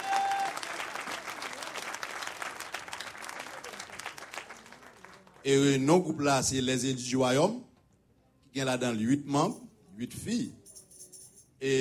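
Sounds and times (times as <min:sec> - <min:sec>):
audience applauding: 0:00.0 - 0:05.4
speech: 0:05.4 - 0:07.7, 0:08.5 - 0:10.6, 0:11.6 - 0:11.7.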